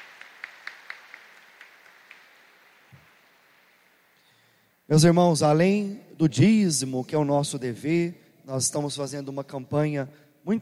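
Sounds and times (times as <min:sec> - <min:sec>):
audience applause: 0:00.0 - 0:04.0
speech: 0:04.9 - 0:10.5.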